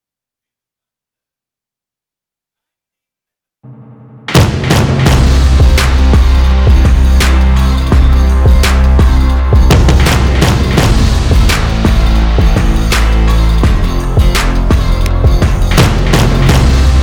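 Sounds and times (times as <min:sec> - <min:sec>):
instrumental music: 0:04.4 - 0:17.0.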